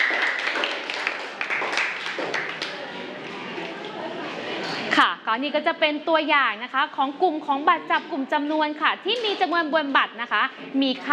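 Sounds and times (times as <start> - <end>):
students clapping hands: 0.0 - 3.0
speech: 5.0 - 11.1.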